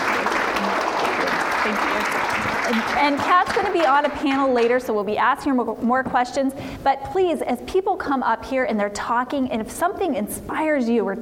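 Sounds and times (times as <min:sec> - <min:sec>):
audience applause: 0:00.0 - 0:04.4
speech: 0:02.7 - 0:11.2.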